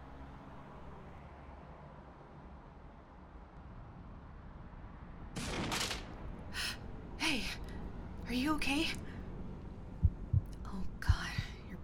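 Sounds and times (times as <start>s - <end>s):
low rumbling noise: 0.0s - 11.8s
rifle gunshot in an audio drama: 5.4s - 6.2s
speech: 8.3s - 9.1s.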